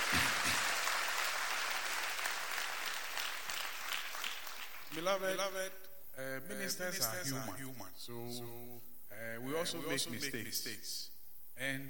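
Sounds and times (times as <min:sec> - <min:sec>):
audience clapping: 0:00.0 - 0:05.2
speech: 0:05.0 - 0:11.8.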